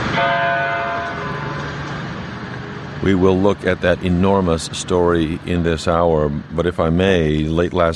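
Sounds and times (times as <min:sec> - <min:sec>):
church bells tolling in Newtown: 0:00.1 - 0:01.9
speech: 0:03.0 - 0:07.9.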